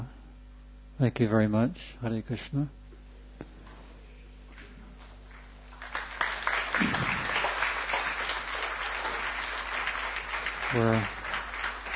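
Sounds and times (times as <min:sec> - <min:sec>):
speech: 0:01.0 - 0:02.8, 0:10.8 - 0:11.2
audience applause: 0:05.3 - 0:11.9.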